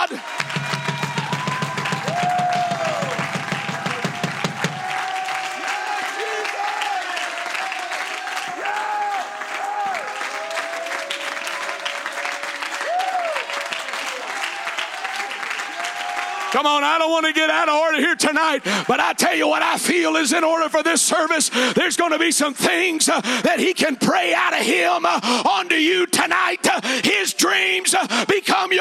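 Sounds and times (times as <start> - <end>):
crowd clapping: 0.0 - 19.6
people cheering and shouting: 0.0 - 22.9
speech: 16.6 - 28.8.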